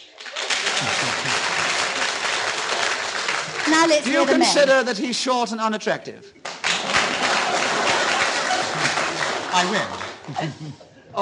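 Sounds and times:
audience clapping: 0.0s - 5.0s, 6.4s - 10.8s
laughter: 0.6s - 2.1s, 6.8s - 11.2s
speech: 3.7s - 6.4s, 9.5s - 11.2s.

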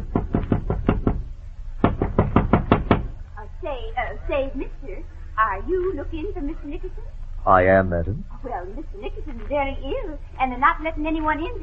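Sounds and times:
knocking on a door: 0.0s - 3.2s
speech: 3.8s - 11.6s.

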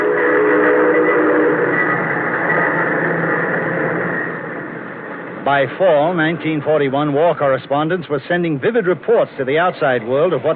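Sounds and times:
horn-like tone: 0.0s - 3.0s
train rumbling: 0.0s - 10.5s
speech: 5.5s - 10.5s.

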